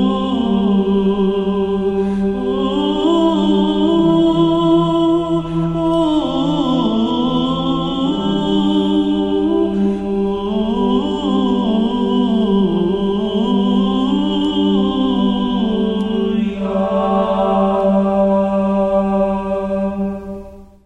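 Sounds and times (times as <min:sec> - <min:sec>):
organum chant: 0:00.0 - 0:20.8.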